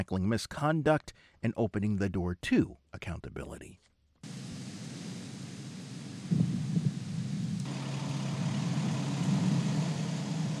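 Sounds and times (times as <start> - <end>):
speech: 0.0 - 3.9
rocket engines roaring at lift-off: 4.2 - 10.5.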